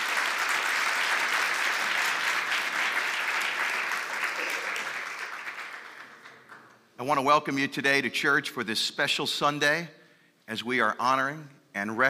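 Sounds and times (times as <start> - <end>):
church crowd applauding the United States Coast Guard color guard: 0.0 - 6.9
speech: 7.0 - 12.0.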